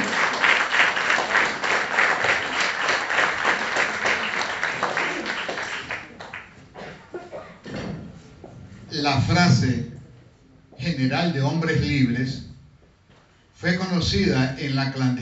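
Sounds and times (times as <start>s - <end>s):
audience applause: 0.0s - 6.6s
speech: 9.1s - 9.9s, 11.0s - 12.4s, 13.6s - 15.2s.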